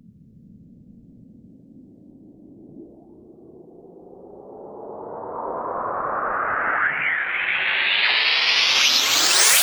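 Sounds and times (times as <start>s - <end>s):
long sweeps: 4.8s - 9.6s.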